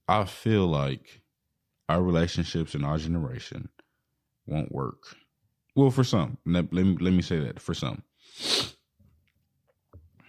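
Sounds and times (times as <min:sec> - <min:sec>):
speech: 0:00.1 - 0:01.2, 0:01.9 - 0:03.8, 0:04.5 - 0:05.2, 0:05.8 - 0:08.8
person sniffling from a sinus infection: 0:08.2 - 0:08.9.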